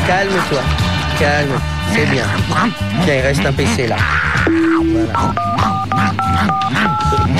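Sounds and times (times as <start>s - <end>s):
speech: 0.1s - 7.3s
telephone keypad dialing tones: 4.5s - 7.3s.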